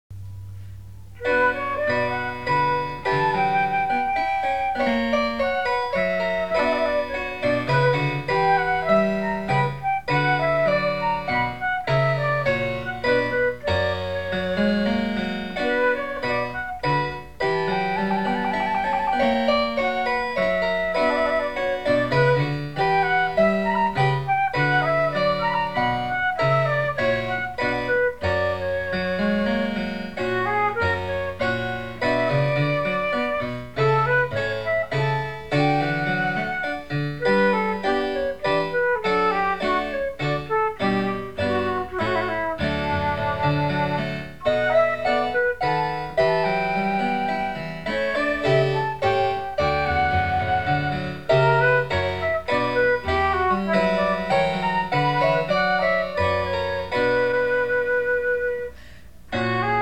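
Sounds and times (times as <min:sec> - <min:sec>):
baroque minuet: 0:00.2 - 0:59.8.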